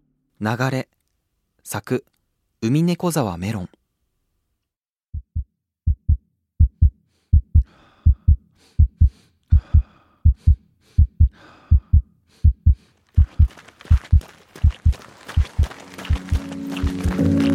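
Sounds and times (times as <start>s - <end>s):
speech: 0.4s - 0.9s, 1.6s - 3.8s
regular heartbeat: 5.1s - 17.0s.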